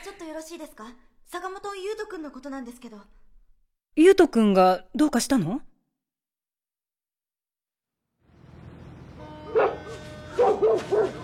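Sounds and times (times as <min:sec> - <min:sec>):
speech: 0:00.2 - 0:03.3, 0:04.0 - 0:05.7
dog named Sunny barking: 0:09.5 - 0:11.2.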